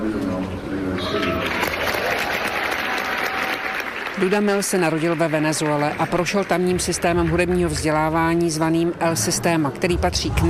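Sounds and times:
orchestra musicians cheering: 0:01.0 - 0:04.2
orchestra musicians applauding: 0:01.0 - 0:07.9
speech: 0:04.2 - 0:10.4.

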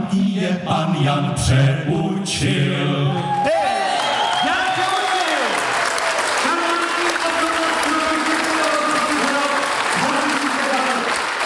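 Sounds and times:
speech: 0:00.1 - 0:03.6
audience applauding in a theatre hall: 0:03.2 - 0:11.4.

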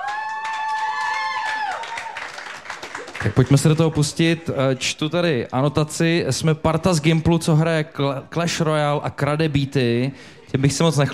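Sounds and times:
audience applause: 0:00.0 - 0:05.0
speech: 0:03.2 - 0:11.1.

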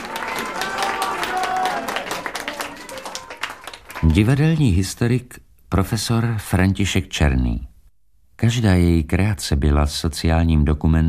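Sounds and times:
theatre audience applause: 0:00.0 - 0:04.6
speech: 0:04.0 - 0:07.7, 0:08.4 - 0:11.0.

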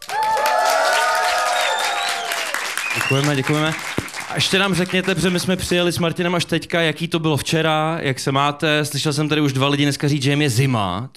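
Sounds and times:
festival crowd cheering with whoops and shouts: 0:00.0 - 0:03.7
festival crowd clapping: 0:00.0 - 0:05.8
speech: 0:03.1 - 0:11.1.

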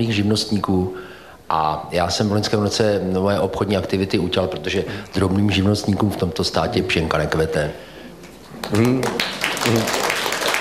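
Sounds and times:
speech: 0:00.0 - 0:07.9, 0:08.6 - 0:10.0
audience applause: 0:08.6 - 0:10.5.

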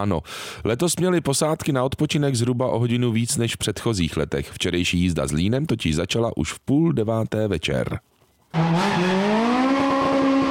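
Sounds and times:
speech: 0:00.0 - 0:09.2
rally car engine roaring on a city-centre special stage: 0:08.6 - 0:10.4.

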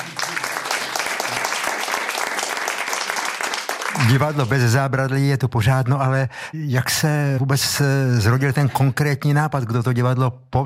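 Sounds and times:
crowd clapping: 0:00.0 - 0:04.8
speech: 0:04.0 - 0:10.6.

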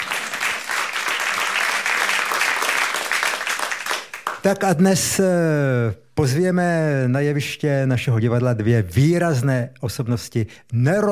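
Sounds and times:
audience applause: 0:00.0 - 0:04.4
speech: 0:04.4 - 0:11.1.

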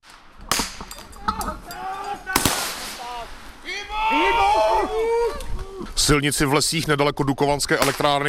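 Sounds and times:
people crying out and shouting in distress: 0:01.5 - 0:02.5, 0:03.7 - 0:06.0
gunfire during military exercise: 0:02.4 - 0:03.1
speech: 0:06.1 - 0:08.2.

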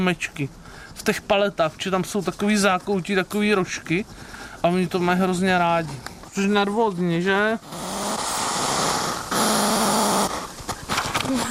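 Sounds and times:
speech: 0:00.0 - 0:07.9
hedgehog huffing loudly: 0:07.6 - 0:10.5.

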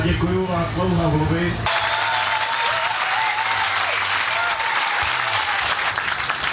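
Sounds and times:
speech: 0:00.1 - 0:01.7
audience applause: 0:01.7 - 0:06.5.

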